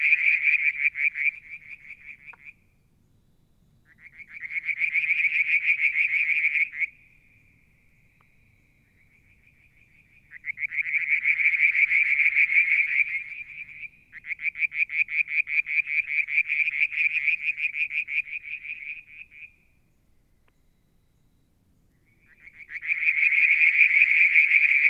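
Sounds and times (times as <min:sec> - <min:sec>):
frogs trilling: 0:00.0 - 0:02.6, 0:03.8 - 0:19.7, 0:22.0 - 0:24.8.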